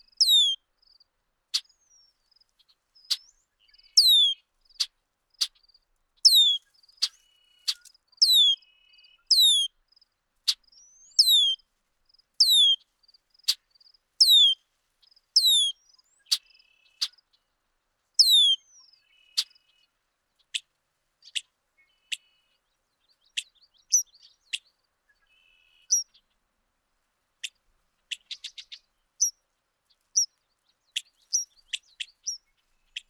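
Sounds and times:
bird song of high descending whistled phrases: 0.0s - 0.6s, 3.1s - 4.4s, 6.2s - 9.7s, 10.7s - 11.6s, 12.4s - 12.8s, 14.2s - 14.6s, 15.4s - 17.2s, 18.2s - 19.6s, 23.2s - 26.2s, 30.9s - 33.0s.

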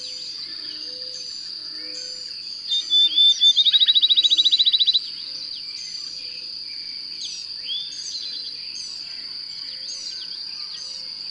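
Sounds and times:
bird song: 0.0s - 11.2s.

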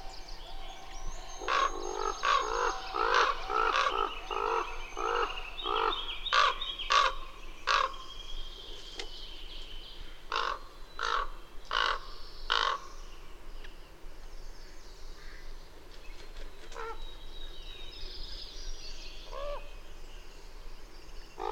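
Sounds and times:
bird cawing hoarsely: 0.0s - 8.0s, 10.3s - 13.0s.

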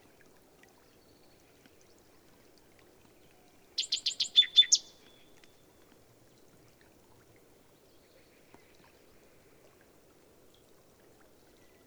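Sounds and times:
bird song with dense buzzy high trills and a sustained thin whistle: 3.8s - 5.2s.

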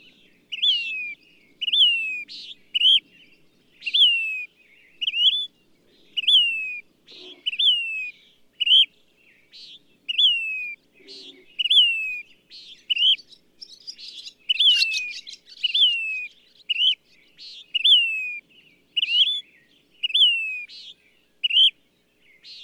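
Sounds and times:
bird whistling phrases: 0.5s - 3.0s, 3.8s - 5.5s, 6.2s - 8.9s, 10.1s - 12.2s, 12.8s - 18.4s, 19.0s - 19.4s, 20.0s - 21.8s.

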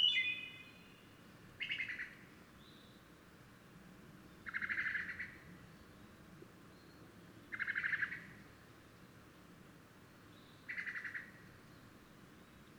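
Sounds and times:
bird song: 0.0s - 3.1s, 4.2s - 8.4s, 10.3s - 12.7s.

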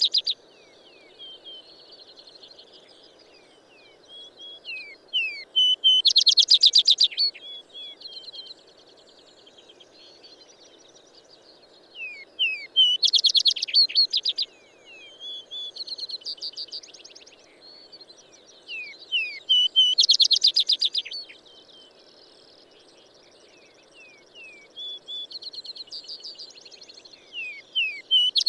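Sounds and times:
bird singing high whistled notes: 4.2s - 8.3s, 12.0s - 14.4s, 18.7s - 21.4s, 27.1s - 28.4s.

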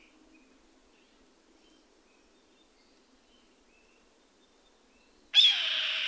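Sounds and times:
bird rasping screech: 5.4s - 6.0s.

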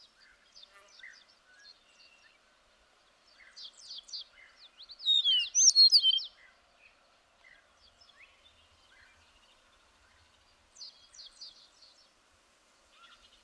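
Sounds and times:
bird song with high twittering and sliding notes: 5.1s - 6.2s.

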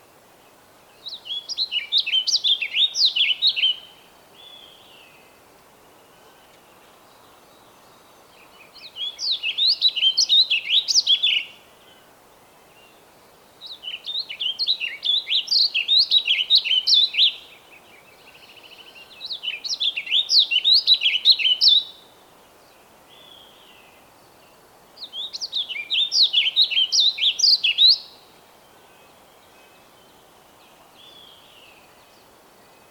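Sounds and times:
bird song: 0.3s - 32.9s.

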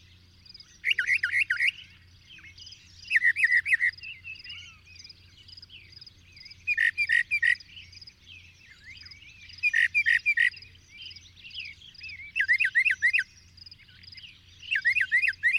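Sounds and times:
bird chirping and twittering: 0.0s - 15.5s.

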